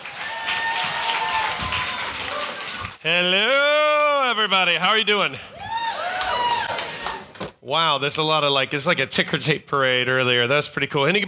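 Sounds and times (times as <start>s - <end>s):
audience round of applause: 0.0s - 3.6s, 5.6s - 7.4s
speech: 3.0s - 5.6s, 7.6s - 11.2s.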